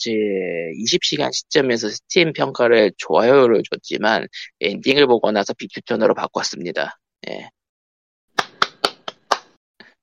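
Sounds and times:
speech: 0.0 - 7.6
hand clapping: 8.4 - 9.5.

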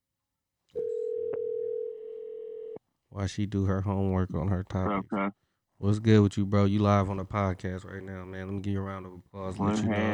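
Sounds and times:
telephone dial tone: 0.8 - 2.8
speech: 3.2 - 10.1.

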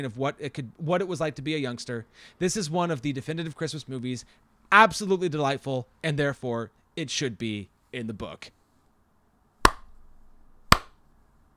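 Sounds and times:
speech: 0.0 - 8.6
slow hand claps: 9.7 - 9.9, 10.7 - 11.0.

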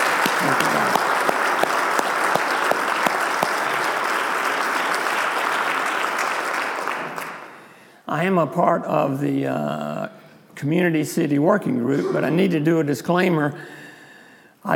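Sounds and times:
audience round of applause: 0.0 - 7.6
speech: 0.4 - 1.0, 8.2 - 13.8.

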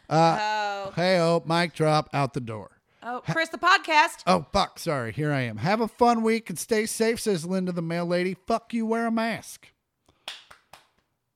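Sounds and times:
speech: 0.1 - 9.7
hand claps: 10.1 - 11.2.

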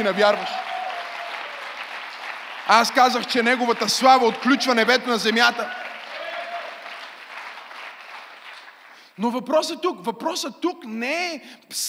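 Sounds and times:
speech: 0.0 - 0.7, 2.7 - 5.8, 9.2 - 11.8
audience clapping: 0.0 - 9.2.

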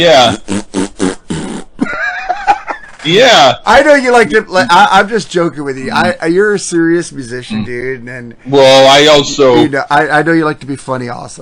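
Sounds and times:
speech: 0.0 - 0.6, 3.0 - 11.3
fart sounds played as music: 0.0 - 1.8
laughter: 1.8 - 3.0.

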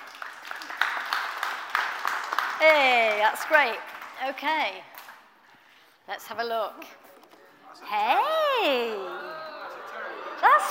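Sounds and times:
audience clapping: 0.0 - 5.3
speech: 2.6 - 4.9, 6.1 - 7.1, 7.8 - 9.3, 10.4 - 10.6.

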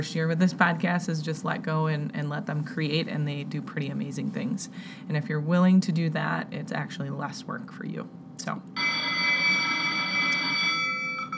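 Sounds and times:
speech: 0.0 - 8.9
bell ringing: 8.8 - 11.3.

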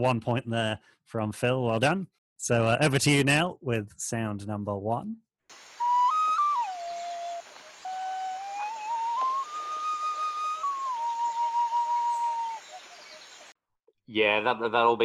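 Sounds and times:
speech: 0.0 - 5.7, 14.1 - 15.0
snake charmer's flute melody: 5.8 - 13.1.

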